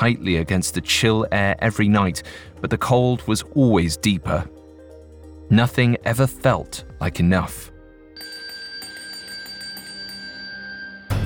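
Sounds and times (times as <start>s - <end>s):
speech: 0.0s - 4.6s, 5.5s - 7.7s
bell ringing: 8.2s - 11.2s.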